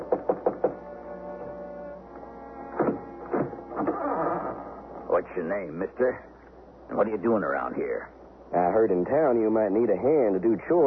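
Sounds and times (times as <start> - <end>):
knocks on a wooden front door: 0.0 - 0.8
low droning hum: 0.7 - 10.8
speech: 5.2 - 6.3, 6.9 - 10.8.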